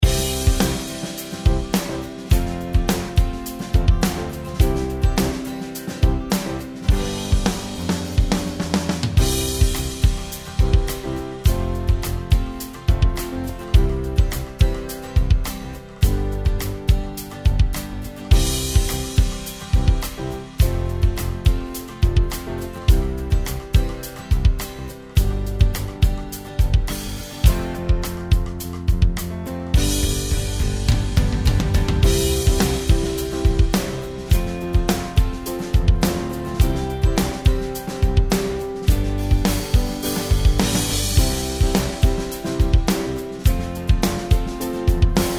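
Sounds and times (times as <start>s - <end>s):
karaoke backing track: 0.0s - 45.3s.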